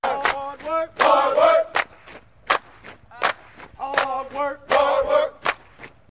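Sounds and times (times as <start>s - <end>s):
hard work cadence chant: 0.0s - 5.9s.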